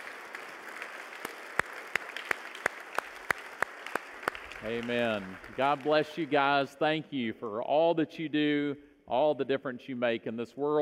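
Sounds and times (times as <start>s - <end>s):
audience applauding: 0.0s - 6.7s
speech: 4.6s - 10.7s.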